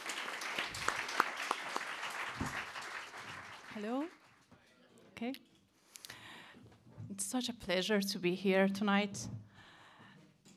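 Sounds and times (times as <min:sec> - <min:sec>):
audience applause: 0:00.0 - 0:04.4
speech: 0:03.8 - 0:04.2, 0:05.2 - 0:05.5, 0:07.3 - 0:09.4.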